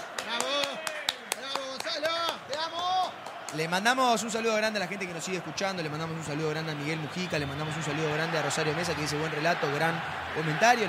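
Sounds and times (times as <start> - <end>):
sharp hand claps: 0.0 - 3.8
speech: 3.5 - 10.8.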